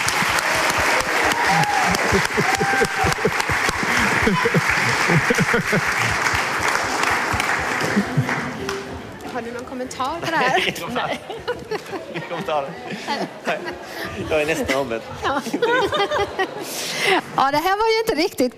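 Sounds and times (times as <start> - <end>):
scattered voices and cheers: 0.0 - 5.2
laughter: 0.0 - 8.8, 10.2 - 17.4
audience applause: 0.0 - 9.0
speech: 2.1 - 3.5, 4.2 - 6.3, 8.0 - 8.2, 9.8 - 18.5.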